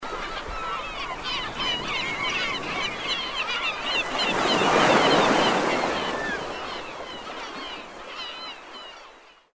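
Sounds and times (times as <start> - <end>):
sea waves: 0.0 - 9.4.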